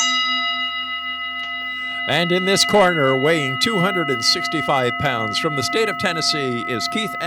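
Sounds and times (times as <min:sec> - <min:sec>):
small bell ringing: 0:00.0 - 0:07.2
speech: 0:02.1 - 0:07.2.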